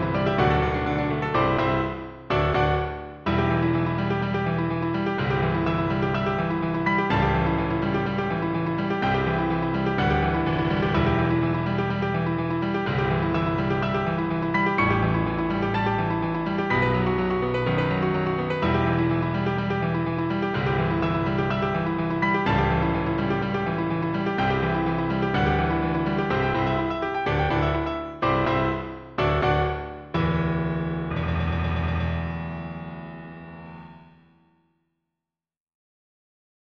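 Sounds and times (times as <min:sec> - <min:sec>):
piano duet: 0:00.0 - 0:34.4.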